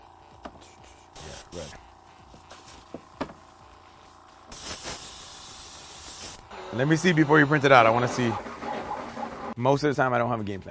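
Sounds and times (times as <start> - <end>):
spray can hissing: 1.2 - 1.8, 4.0 - 6.5
speech: 1.5 - 1.9, 6.8 - 8.5, 9.6 - 10.6.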